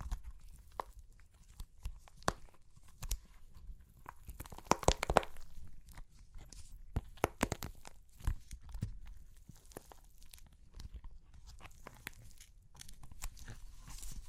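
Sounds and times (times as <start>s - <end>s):
clay crunching and cracking: 0.0s - 14.2s.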